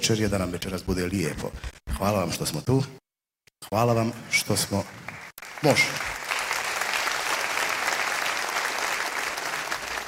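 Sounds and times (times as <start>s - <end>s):
speech: 0.0s - 3.0s, 3.6s - 6.1s
audience applause at a sevdalinka concert evening: 5.1s - 10.0s.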